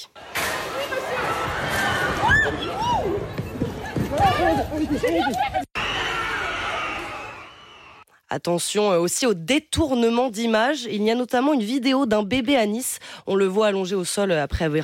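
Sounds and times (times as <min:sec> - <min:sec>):
protest crowd shouting and yelling as it is broken up: 0:00.2 - 0:08.0
speech: 0:04.5 - 0:05.6, 0:08.3 - 0:14.8.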